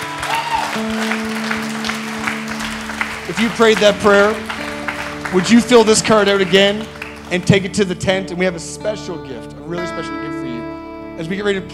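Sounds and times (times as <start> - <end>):
audience applause: 0.0 - 7.9
speech: 0.8 - 1.2, 3.4 - 4.5, 5.3 - 10.4, 11.2 - 11.7.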